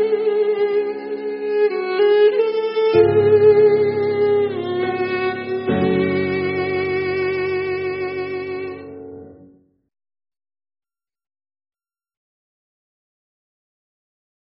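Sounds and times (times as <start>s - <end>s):
violin: 0.0s - 9.5s.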